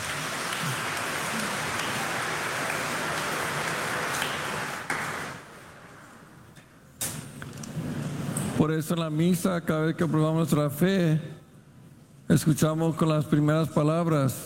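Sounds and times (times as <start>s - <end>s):
audience applause: 0.0s - 5.5s
speech: 8.6s - 11.3s, 12.3s - 14.4s.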